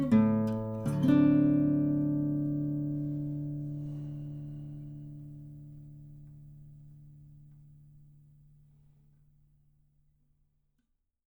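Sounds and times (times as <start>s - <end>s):
blues music: 0.0s - 4.9s.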